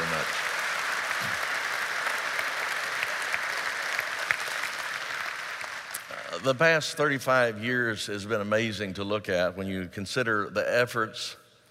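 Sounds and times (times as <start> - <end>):
large audience applause: 0.0 - 6.4
speech: 6.4 - 11.4.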